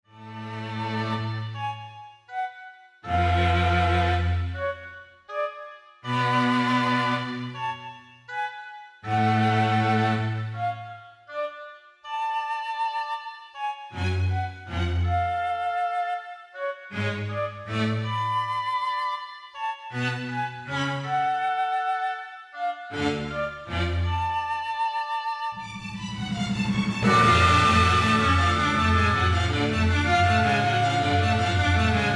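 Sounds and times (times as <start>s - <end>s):
symphonic raga music: 0.1s - 32.1s.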